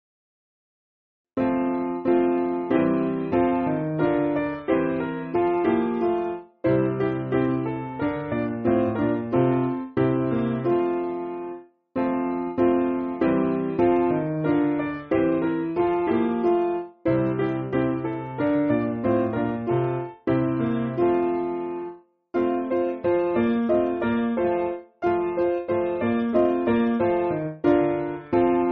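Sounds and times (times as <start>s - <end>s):
church piano music: 1.4s - 28.6s.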